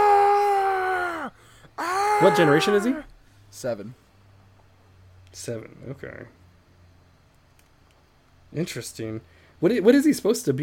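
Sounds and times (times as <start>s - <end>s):
man screaming imitating a Pokemon cry: 0.0s - 3.1s
speech: 2.2s - 4.0s, 5.3s - 6.4s, 8.5s - 10.6s.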